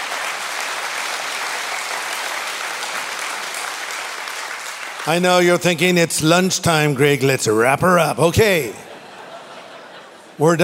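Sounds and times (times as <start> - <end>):
audience applauding: 0.0 - 6.0
speech: 5.0 - 8.9, 10.4 - 10.6
laughter: 8.4 - 10.6.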